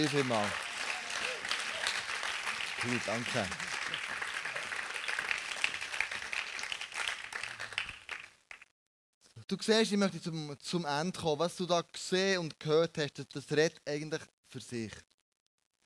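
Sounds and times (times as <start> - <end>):
speech: 0.0 - 0.6, 2.8 - 3.7, 9.5 - 15.1
audience applause: 0.0 - 8.6.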